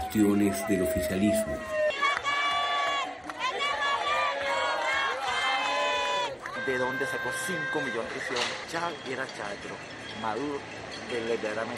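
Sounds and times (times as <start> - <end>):
speech: 0.1 - 1.8, 6.7 - 11.7
street protesters shouting slogans against Maduro: 0.8 - 8.2.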